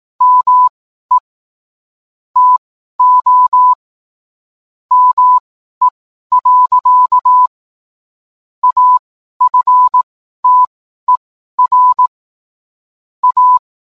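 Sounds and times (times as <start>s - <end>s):
morse code beeps: 0.2s - 1.2s, 2.4s - 3.8s, 4.9s - 5.4s, 6.3s - 7.5s, 8.6s - 12.1s, 13.2s - 13.6s.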